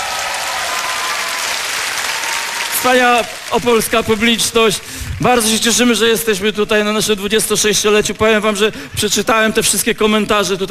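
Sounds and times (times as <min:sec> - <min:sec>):
crowd applauding: 0:00.0 - 0:06.0
speech: 0:02.8 - 0:10.7.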